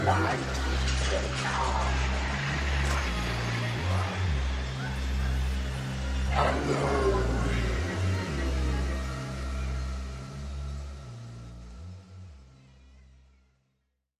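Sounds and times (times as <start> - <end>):
Halloween voice: 0.0 - 10.4.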